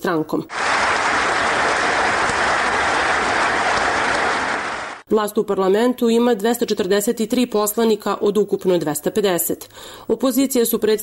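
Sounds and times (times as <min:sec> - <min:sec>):
speech: 0:00.0 - 0:00.7, 0:05.1 - 0:11.0
parliament deputies applauding after a speech in the Serbian parliament: 0:00.5 - 0:05.0.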